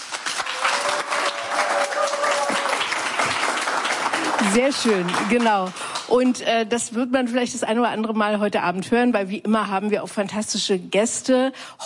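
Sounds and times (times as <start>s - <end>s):
audience clapping at a live evening show: 0.0s - 6.4s
speech: 4.4s - 11.8s.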